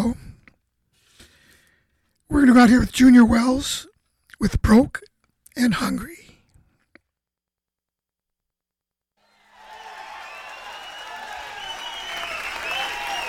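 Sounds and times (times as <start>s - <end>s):
speech: 2.4s - 6.2s
audience applause at a blues show: 9.2s - 13.2s.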